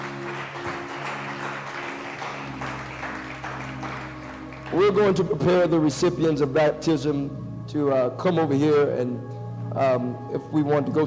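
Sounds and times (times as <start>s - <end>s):
audience clapping hands: 0.0s - 5.5s
speech: 4.7s - 11.0s.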